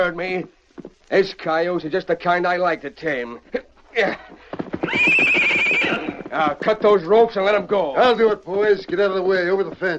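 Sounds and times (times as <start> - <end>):
speech: 0.0 - 9.9
horse whinnying: 4.1 - 6.6.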